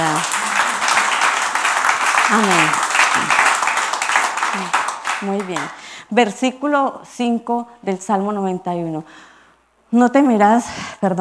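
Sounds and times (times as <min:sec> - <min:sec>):
audience applause: 0:00.0 - 0:05.9
speech: 0:02.3 - 0:03.4, 0:04.6 - 0:09.3, 0:09.9 - 0:11.1.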